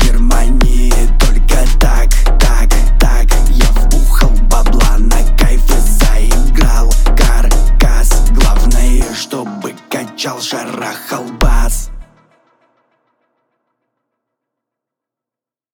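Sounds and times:
29-33Hz bass tone: 0.0 - 9.0, 11.4 - 12.0.

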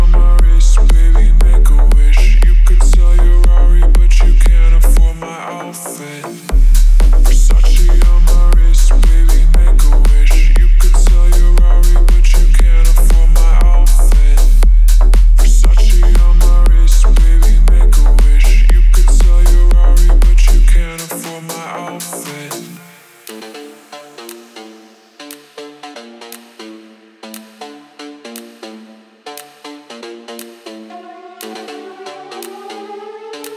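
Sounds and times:
37, 39 and 41 Hz low bass tone: 0.0 - 5.2, 6.5 - 21.0.

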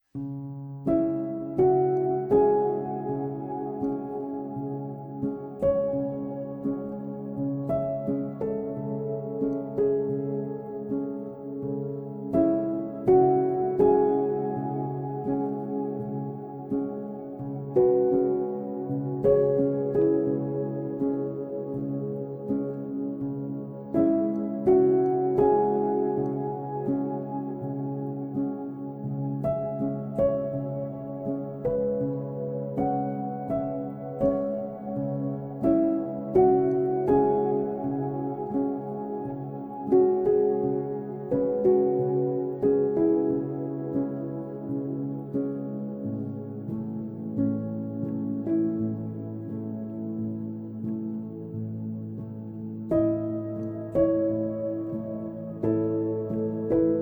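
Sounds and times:
calm sleeping music for cats: 0.0 - 57.0.

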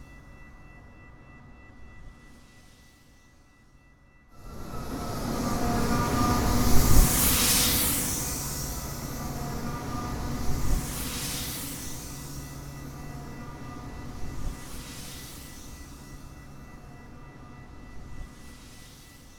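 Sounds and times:
Ultra Train whizzing by: 4.4 - 19.0.

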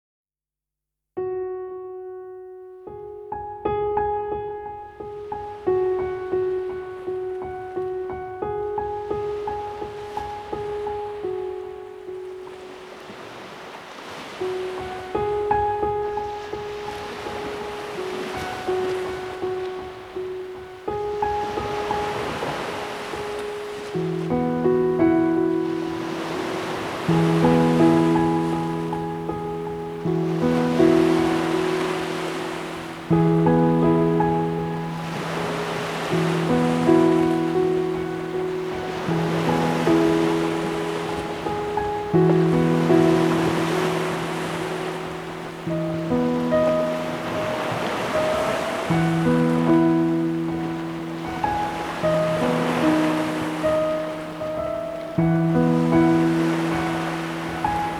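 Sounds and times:
ocean waves: 4.4 - 57.9.

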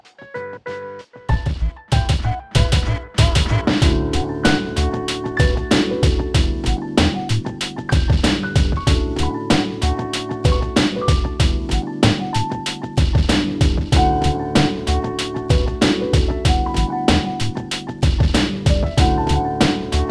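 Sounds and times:
90s summer boogie hip hop remix: 1.3 - 20.0.

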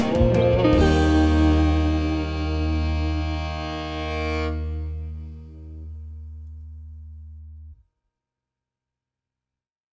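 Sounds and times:
relaxing guitar: 0.0 - 7.8.

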